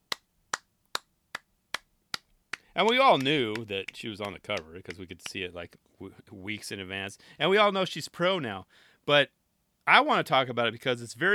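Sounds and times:
soft golf claps: 0:01.8 - 0:05.4
speech: 0:02.8 - 0:11.3.

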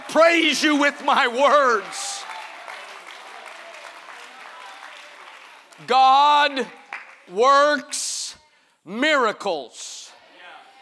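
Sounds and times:
audience clapping: 0:00.0 - 0:07.4
speech: 0:00.1 - 0:02.0, 0:05.8 - 0:08.1, 0:08.8 - 0:09.9.

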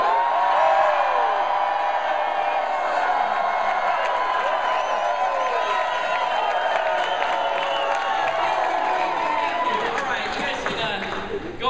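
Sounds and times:
large audience standing up screaming and cheering: 0:00.0 - 0:11.6
faint clapping: 0:06.4 - 0:11.3.

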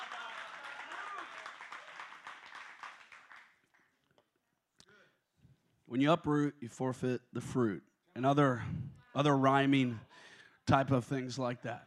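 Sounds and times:
audience clapping and applause: 0:00.0 - 0:04.1
speech: 0:05.9 - 0:11.8.

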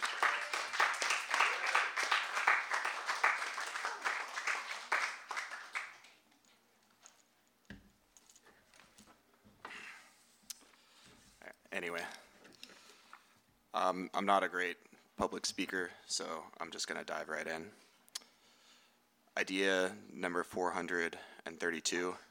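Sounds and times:
audience applause welcoming a speaker: 0:00.0 - 0:06.2
speech: 0:11.8 - 0:12.2, 0:13.8 - 0:17.8, 0:19.4 - 0:22.2.

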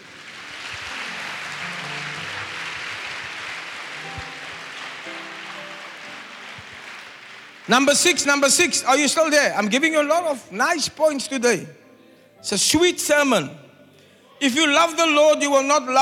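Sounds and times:
faint musical tones: 0:00.0 - 0:08.6
audience clapping: 0:00.0 - 0:09.0
speech: 0:07.7 - 0:11.8, 0:12.4 - 0:13.6, 0:14.4 - 0:15.9.

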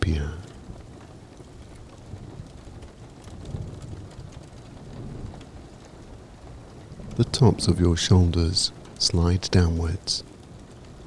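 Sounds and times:
steady rain: 0:07.0 - 0:10.3
speech: 0:07.2 - 0:10.3.

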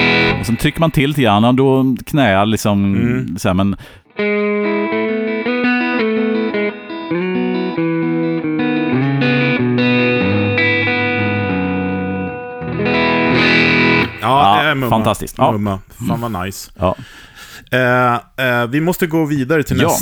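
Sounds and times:
overdriven electric guitar through Ron Ellis pickups: 0:00.0 - 0:00.6, 0:04.1 - 0:14.6
speech: 0:00.5 - 0:05.1, 0:14.2 - 0:20.0.

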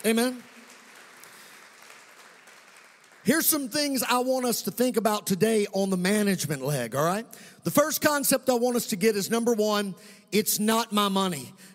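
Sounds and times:
speech: 0:00.0 - 0:00.5, 0:03.2 - 0:11.7
audience clapping hands: 0:00.0 - 0:04.0.

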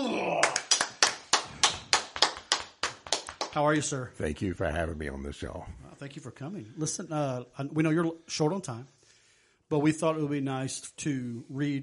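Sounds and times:
rhythmic hand clapping from a talk show audience: 0:00.4 - 0:03.8
speech: 0:03.6 - 0:09.0, 0:09.7 - 0:11.8.

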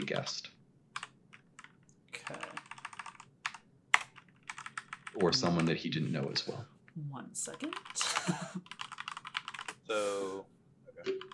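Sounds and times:
speech: 0:00.1 - 0:00.6, 0:05.2 - 0:08.8, 0:09.9 - 0:11.3
rapid keyboard typing while writing notes: 0:01.0 - 0:05.8, 0:07.5 - 0:09.8, 0:11.1 - 0:11.3
laughter: 0:08.0 - 0:08.6
short voiced hum: 0:09.9 - 0:10.4.

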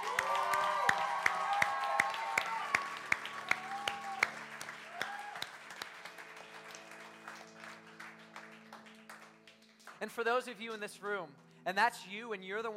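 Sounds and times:
audience cheering: 0:00.0 - 0:07.0
audience clapping: 0:00.0 - 0:12.0
speech: 0:10.0 - 0:12.7.

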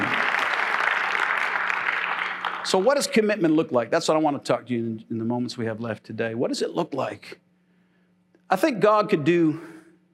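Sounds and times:
audience clapping hands: 0:00.0 - 0:03.2
speech: 0:02.7 - 0:07.4, 0:08.5 - 0:09.7.

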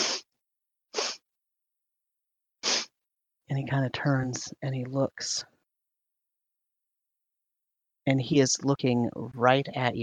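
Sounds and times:
breathy sniffs through the nose: 0:00.0 - 0:00.3, 0:00.9 - 0:01.2, 0:02.6 - 0:03.0
speech: 0:03.5 - 0:05.5, 0:08.0 - 0:10.0.

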